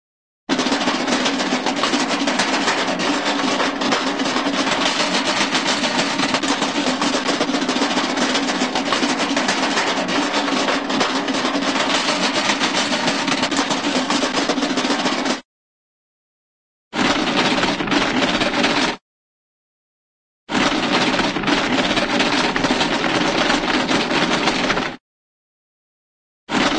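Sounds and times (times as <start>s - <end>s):
cartoon short rattly shake: 0.5s - 15.4s, 17.0s - 19.0s, 20.5s - 25.0s.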